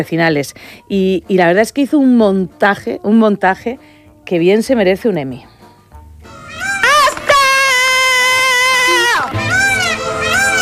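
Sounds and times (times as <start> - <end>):
speech: 0.0 - 5.5
protester screaming: 6.4 - 10.6.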